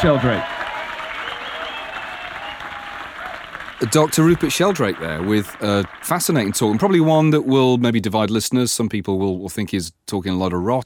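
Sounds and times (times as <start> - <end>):
speech: 0.0 - 0.5, 3.8 - 10.8
audience applause: 0.0 - 7.5.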